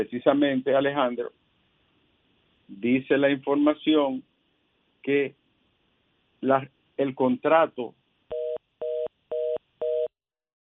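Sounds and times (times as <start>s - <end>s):
speech: 0.0s - 1.4s, 2.7s - 4.3s, 5.0s - 5.4s, 6.4s - 8.0s
telephone tone after a dropped phone call: 8.3s - 10.1s.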